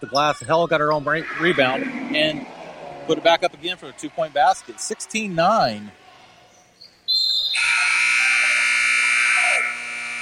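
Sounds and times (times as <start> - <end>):
speech: 0.0 - 6.0
loud harsh electronic end of quarter buzzer: 7.6 - 10.2.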